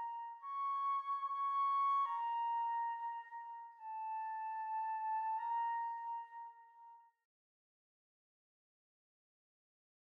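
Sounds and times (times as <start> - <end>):
flute: 0.0 - 7.2.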